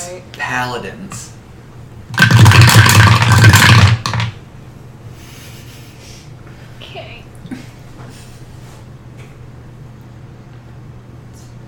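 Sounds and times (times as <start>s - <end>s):
speech: 0.2s - 1.4s
dice being gathered and rolled: 2.2s - 4.4s.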